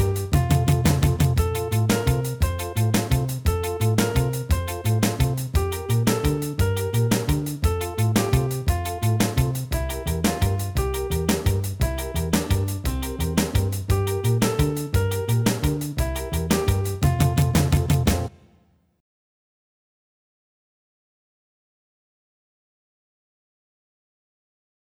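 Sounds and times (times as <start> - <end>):
instrumental music: 0.0 - 18.5.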